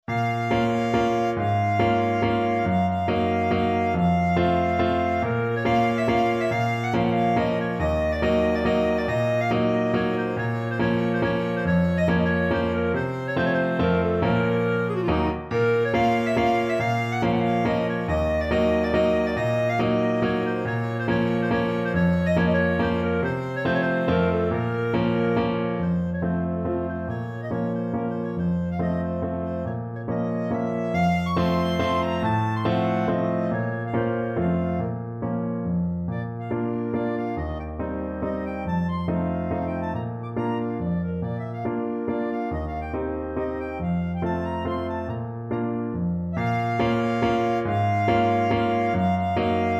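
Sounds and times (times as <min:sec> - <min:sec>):
Polish kujawiak folk dance on clarinet: 0:00.0 - 0:49.7.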